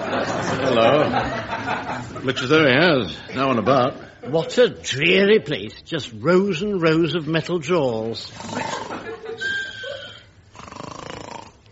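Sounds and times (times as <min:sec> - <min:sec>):
laughter: 0:00.0 - 0:02.5, 0:08.4 - 0:10.2
speech: 0:00.2 - 0:09.5
man snoring: 0:08.3 - 0:09.0, 0:10.5 - 0:11.6.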